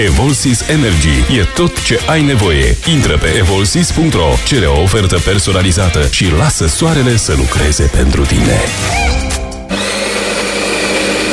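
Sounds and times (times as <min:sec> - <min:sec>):
speech: 0:00.0 - 0:09.3
electric coffee grinder grinding fresh coffee beans: 0:09.0 - 0:11.3.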